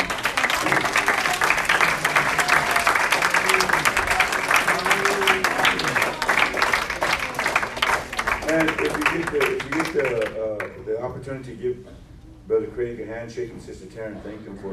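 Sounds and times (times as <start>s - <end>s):
audience applause, clapping hands: 0.0s - 10.8s
speech: 11.2s - 14.7s.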